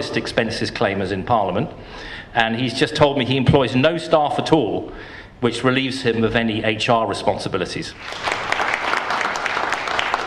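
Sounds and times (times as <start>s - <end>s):
speech: 0.0s - 8.6s
audience applause in a village hall at a Christmas event: 8.0s - 10.2s.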